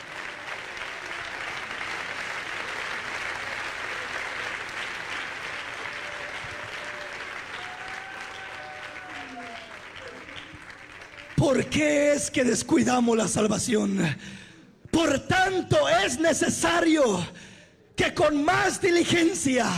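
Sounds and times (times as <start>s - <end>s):
crowd audience clapping hands: 0.0s - 12.8s
speech: 11.5s - 14.4s, 15.0s - 19.7s.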